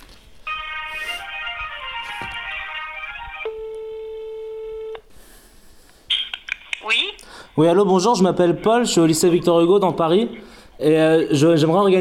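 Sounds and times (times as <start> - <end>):
telephone line tone while a call is transferred: 0.5 - 5.0
speech: 7.6 - 11.9.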